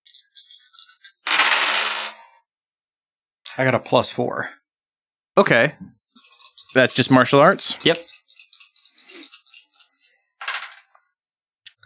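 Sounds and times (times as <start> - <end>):
dice rolled in a tabletop role-playing game: 0.1 - 2.2, 6.2 - 11.0
speech: 3.6 - 4.6, 5.4 - 6.0, 6.8 - 8.1.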